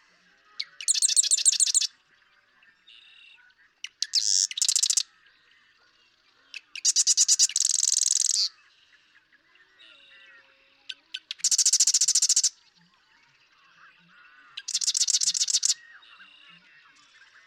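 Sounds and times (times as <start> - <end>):
Marsh Wren song: 0.0 - 17.4
Marsh Wren chattering: 0.6 - 1.9, 3.8 - 5.0, 6.6 - 8.5, 10.9 - 12.5, 14.6 - 15.8.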